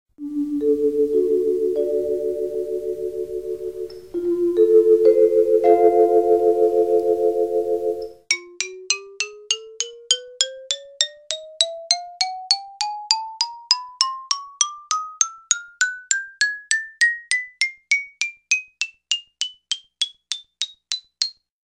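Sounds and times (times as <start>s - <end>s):
xylophone: 0.2s - 21.4s
metallophone: 0.3s - 9.0s.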